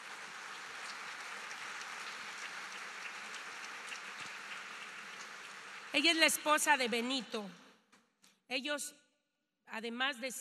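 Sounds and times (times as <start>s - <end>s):
audience applause: 0.0s - 6.1s
speech: 6.0s - 7.6s, 8.5s - 9.0s, 9.7s - 10.3s.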